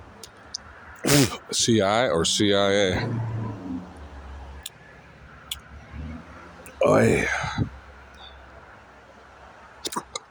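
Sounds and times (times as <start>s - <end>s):
hiccups: 1.0s - 1.6s, 9.8s - 10.2s
speech: 1.1s - 3.4s, 6.8s - 7.7s.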